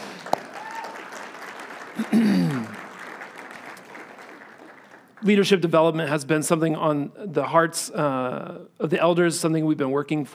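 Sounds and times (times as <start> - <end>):
audience applause: 0.0 - 5.4
speech: 2.0 - 2.7, 5.2 - 10.3.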